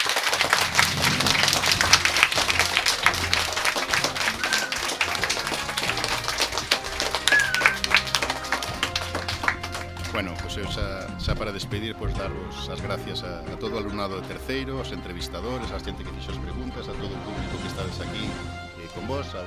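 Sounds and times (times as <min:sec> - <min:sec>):
crowd of students applauding: 0:00.0 - 0:11.1
speech: 0:10.6 - 0:19.4.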